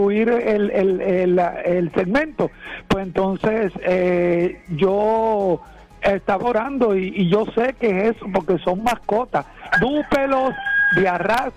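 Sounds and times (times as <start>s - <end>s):
speech: 0.0s - 11.5s
rooster crowing: 9.7s - 11.1s.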